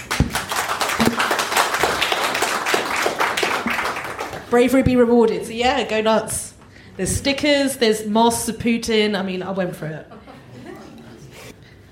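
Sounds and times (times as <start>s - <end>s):
audience clapping: 0.0s - 4.7s
speech: 4.5s - 10.3s.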